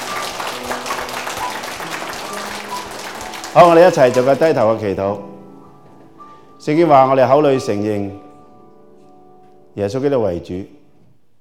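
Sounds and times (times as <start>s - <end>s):
audience applause: 0.0s - 4.6s
speech: 3.6s - 5.3s, 6.6s - 8.3s, 9.8s - 10.8s.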